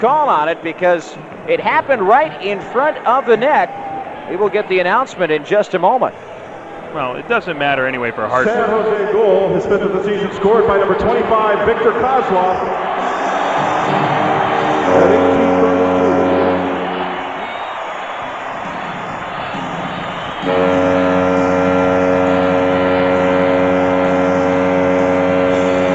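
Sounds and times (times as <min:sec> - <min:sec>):
speech: 0:00.0 - 0:06.3, 0:06.9 - 0:12.8
Sharks hockey fans cheering: 0:00.0 - 0:25.9
arena foghorn: 0:12.9 - 0:18.0, 0:19.5 - 0:25.9.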